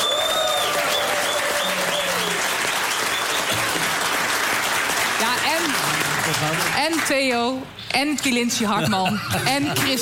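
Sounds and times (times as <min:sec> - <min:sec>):
warm applause from studio audience: 0:00.0 - 0:07.5
speech: 0:06.4 - 0:10.0.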